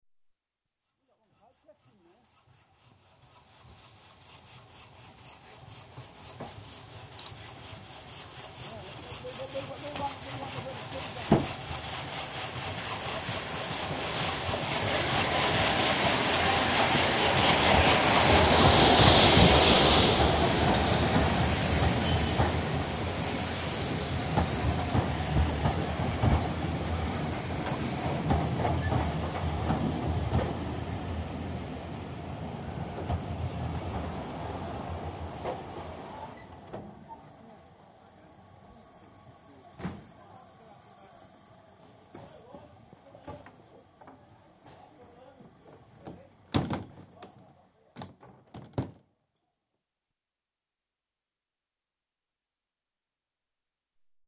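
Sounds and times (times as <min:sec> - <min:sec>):
steam train arriving at station: 0:01.3 - 0:47.6
steam train doors: 0:09.8 - 0:37.4, 0:39.7 - 0:40.3, 0:41.8 - 0:49.0.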